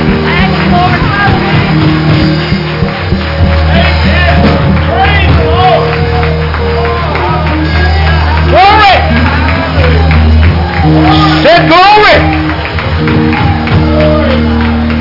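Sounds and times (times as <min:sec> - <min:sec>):
hand clapping: 0:00.0 - 0:14.9.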